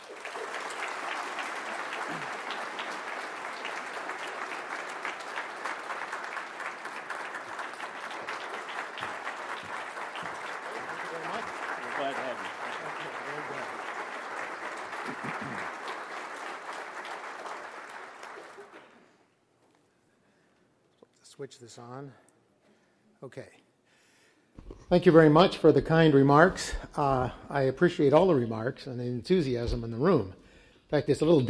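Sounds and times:
forum audience applause welcoming a guest scientist in Louisville: 0.0s - 19.1s
speech: 21.4s - 22.2s, 23.2s - 23.6s, 24.9s - 31.4s.

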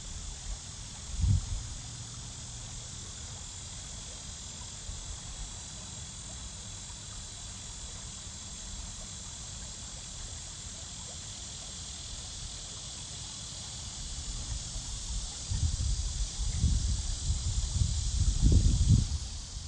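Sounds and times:
summer insect chorus droning by a creek in a park: 0.0s - 19.6s.

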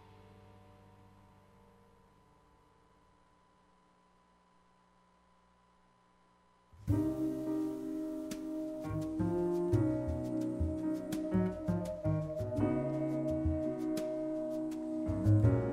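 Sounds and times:
jazz music: 6.8s - 15.7s.

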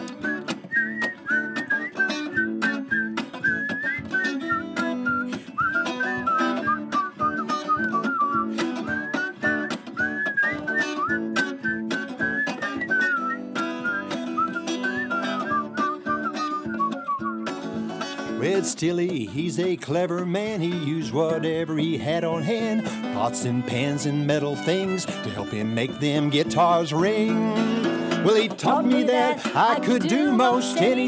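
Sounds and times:
group whistling along to a song: 0.1s - 17.6s, 21.2s - 22.0s, 28.7s - 31.0s
speech: 18.6s - 31.0s.

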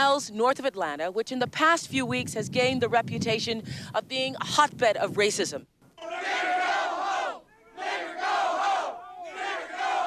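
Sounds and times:
speech: 0.0s - 6.6s
crowd shouting: 6.0s - 10.0s.

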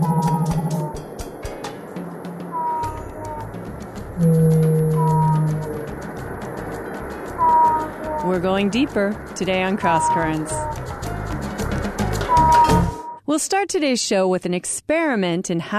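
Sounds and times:
blue whale calls: 0.0s - 1.0s, 2.5s - 3.6s, 4.2s - 5.9s, 7.4s - 8.3s, 9.8s - 10.8s, 12.3s - 13.2s
constant hissing background: 0.0s - 12.3s
speech: 8.3s - 10.6s, 13.4s - 15.7s.

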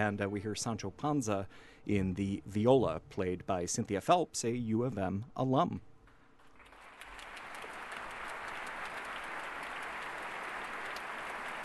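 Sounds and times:
speech: 0.0s - 5.9s
audience applause for orchestra: 6.6s - 11.6s.

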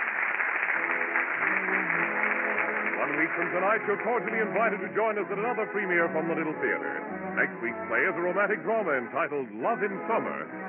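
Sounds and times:
theater audience applause ovation: 0.0s - 6.3s
speech: 3.1s - 10.6s.

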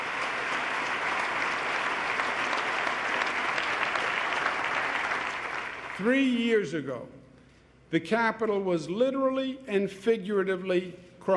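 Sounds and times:
audience applause: 0.0s - 6.0s
speech: 6.0s - 7.2s, 7.9s - 11.3s.

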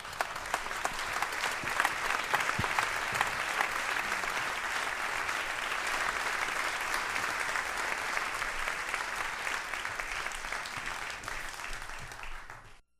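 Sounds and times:
audience applause at a concert welcoming a performer: 0.0s - 12.8s.

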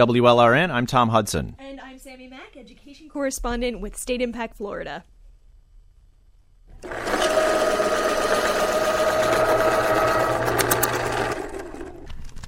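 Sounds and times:
speech: 0.0s - 5.1s
pencil being sharpened in an electric sharpener: 6.7s - 12.2s.

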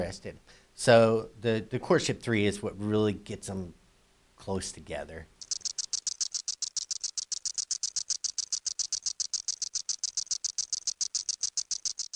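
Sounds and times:
speech: 0.0s - 3.8s, 4.4s - 5.3s
cicada call with high dry rattling buzz: 4.5s - 12.1s.

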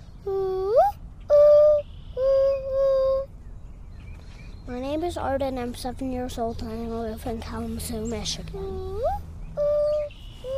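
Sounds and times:
child imitating mourning dove call: 0.2s - 3.3s, 8.5s - 10.5s
speech: 5.1s - 9.2s.

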